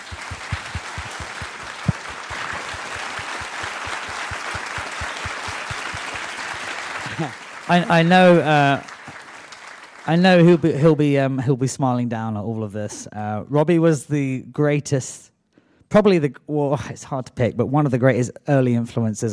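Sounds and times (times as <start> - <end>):
applause: 0.0 - 11.0
speech: 7.2 - 8.9, 10.1 - 15.3, 15.9 - 19.3.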